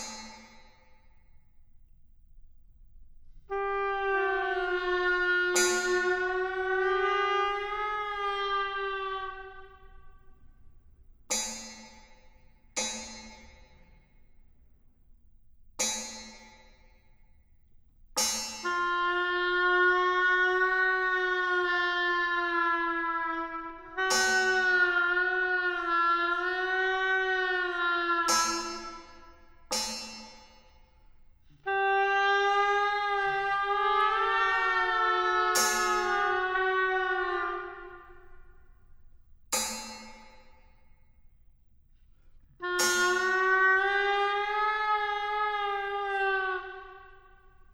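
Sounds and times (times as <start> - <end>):
oboe: 3.5 - 10.5, 18.6 - 29.8, 31.6 - 38.7, 42.6 - 47.7.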